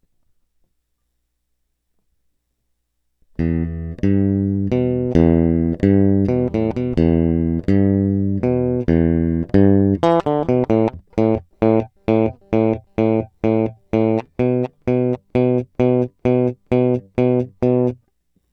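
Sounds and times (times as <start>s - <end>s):
electric guitar: 3.4s - 18.0s.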